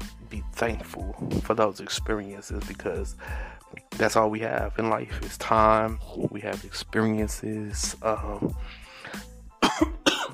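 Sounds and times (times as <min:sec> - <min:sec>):
speech: 0:00.6 - 0:09.2
harsh coughing: 0:09.6 - 0:10.3.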